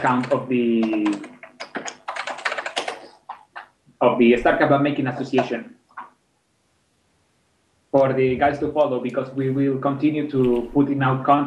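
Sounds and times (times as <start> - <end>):
speech: 0.0 - 1.4, 4.0 - 5.8, 7.9 - 11.4
typing on a computer keyboard: 0.0 - 3.7.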